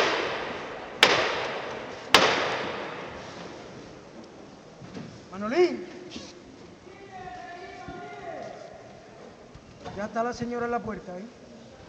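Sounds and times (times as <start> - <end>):
procession float knocker striking: 0.0 - 3.6
steady hiss: 0.0 - 11.8
speech: 5.4 - 6.2, 10.0 - 11.4.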